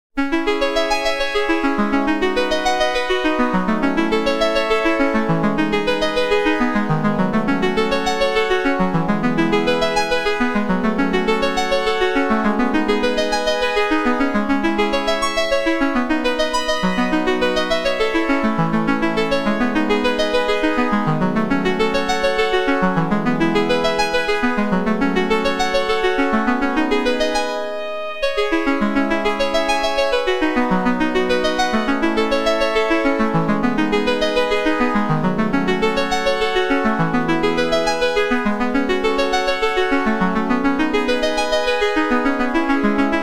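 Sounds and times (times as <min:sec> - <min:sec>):
OPL3 synth arpeggio: 0:00.2 - 0:43.2.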